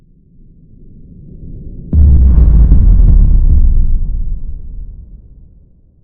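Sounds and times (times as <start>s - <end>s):
explosion: 1.9s - 6.0s.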